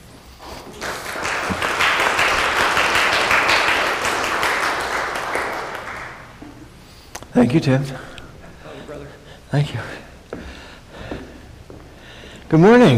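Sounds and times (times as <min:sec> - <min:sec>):
Christ Community Church congregation applause welcoming the bishop: 0:00.5 - 0:06.7
speech: 0:07.4 - 0:08.1, 0:09.5 - 0:10.0, 0:12.5 - 0:12.9.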